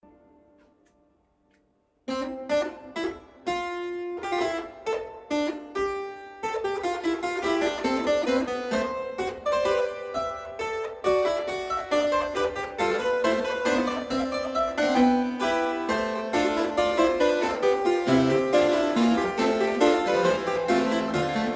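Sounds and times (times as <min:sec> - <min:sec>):
fugue on a Flemish harpsichord: 0:02.1 - 0:21.5.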